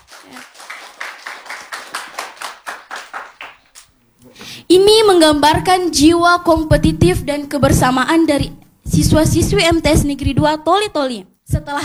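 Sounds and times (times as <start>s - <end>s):
rhythmic audience clapping after a student yell performance: 0.0s - 10.9s
speech: 4.7s - 11.8s.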